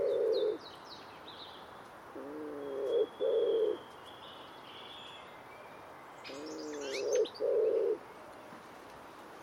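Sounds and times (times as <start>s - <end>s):
common wood pigeon song of deep muffled coos: 0.0s - 0.6s, 2.2s - 3.8s, 6.3s - 8.0s.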